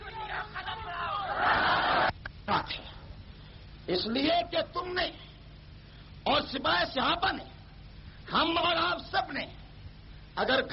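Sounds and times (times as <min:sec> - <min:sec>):
crowd at a religious rally shouting a slogan in unison: 0:00.2 - 0:02.1
speech: 0:03.9 - 0:05.3, 0:06.2 - 0:07.5, 0:08.3 - 0:09.6, 0:10.4 - 0:10.7.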